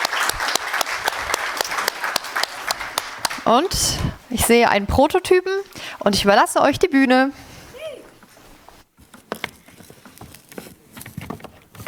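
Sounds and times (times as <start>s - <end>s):
audience applause: 0.0s - 4.0s
speech: 3.5s - 7.4s.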